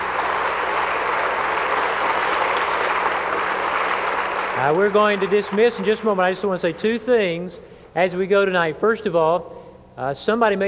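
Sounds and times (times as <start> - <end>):
audience clapping hands: 0.0 - 7.2
speech: 4.6 - 10.6.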